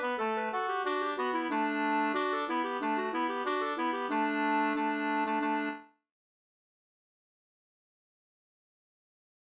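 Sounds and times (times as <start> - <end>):
slangpolska folk dance tune: 0.0 - 5.8.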